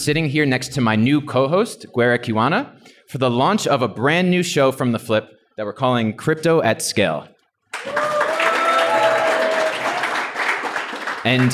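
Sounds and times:
speech: 0:00.0 - 0:08.0, 0:11.2 - 0:11.5
live audience applause in Nairobi at a show launch: 0:07.7 - 0:11.5.

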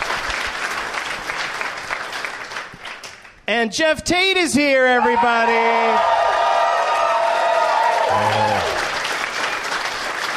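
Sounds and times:
audience applause: 0:00.0 - 0:03.3, 0:05.9 - 0:10.3
speech: 0:03.5 - 0:06.2, 0:08.1 - 0:08.8.

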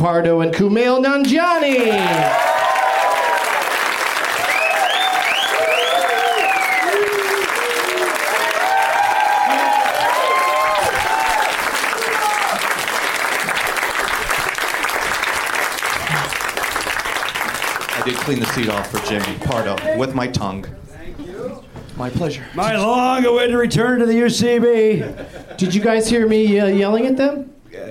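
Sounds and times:
speech: 0:00.0 - 0:02.5, 0:18.3 - 0:20.8, 0:22.0 - 0:27.5
studio audience at the UCB theater clapping: 0:01.5 - 0:20.2
studio audience whoops and cheering: 0:01.7 - 0:03.8, 0:04.4 - 0:12.7.

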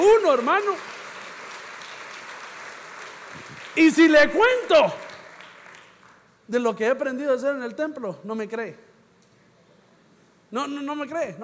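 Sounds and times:
audience applause: 0:00.0 - 0:06.2
speech: 0:00.3 - 0:01.0, 0:03.8 - 0:05.0, 0:06.5 - 0:08.9, 0:10.5 - 0:11.4.

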